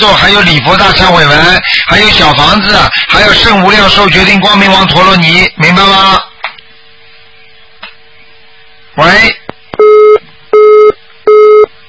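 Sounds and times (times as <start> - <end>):
speech: 0.0 - 6.3, 9.0 - 9.4
telephone busy tone after a call is cut off: 9.8 - 11.7.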